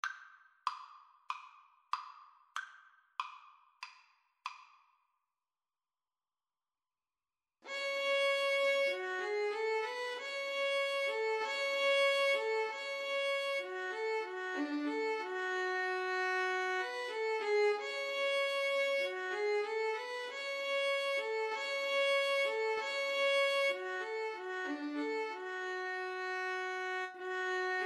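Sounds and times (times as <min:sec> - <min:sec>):
violin and cello duet: 0:07.7 - 0:27.8.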